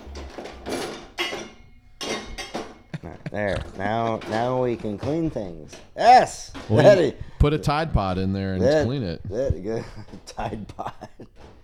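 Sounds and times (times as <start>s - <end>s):
dishes clinking while loading a dishwasher: 0.0s - 11.6s
laughter: 2.9s - 5.1s, 6.6s - 11.5s
speech: 3.4s - 11.6s.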